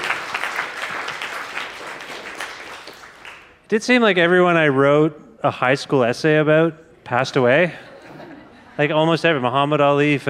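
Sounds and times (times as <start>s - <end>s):
audience applause: 0.0s - 3.5s
speech: 3.7s - 7.9s, 8.8s - 10.2s
laughter: 7.6s - 9.4s.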